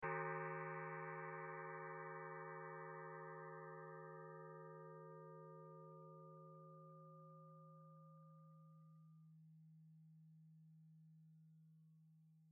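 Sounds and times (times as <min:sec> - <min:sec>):
gong: 0:00.0 - 0:08.6.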